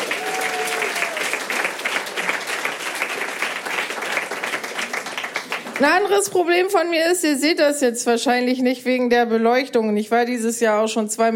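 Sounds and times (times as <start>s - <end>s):
audience applause: 0.0s - 6.1s
speech: 5.8s - 11.3s.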